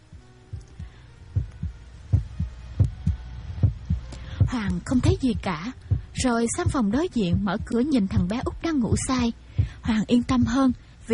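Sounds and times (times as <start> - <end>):
faint hum: 0.0 - 11.1
pounding heartbeat: 0.1 - 10.6
speech: 4.6 - 11.1.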